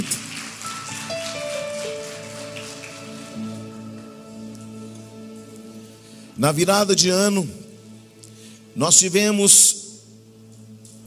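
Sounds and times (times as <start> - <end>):
audience applauding: 0.0 - 4.3
speech: 6.4 - 7.6, 8.8 - 9.9.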